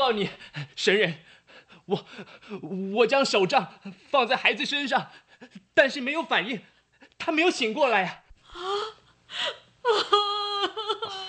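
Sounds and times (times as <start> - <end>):
speech: 0.0 - 11.2
person crying: 8.5 - 11.2.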